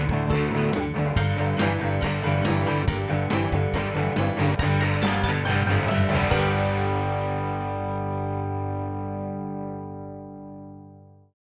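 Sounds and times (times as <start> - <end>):
country boogie piano rhythm: 0.0 - 10.8.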